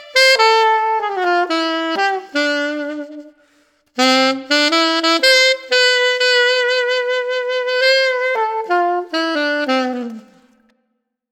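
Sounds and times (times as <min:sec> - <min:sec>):
alto saxophone with metal mouthpiece and reverb: 0:00.0 - 0:10.9.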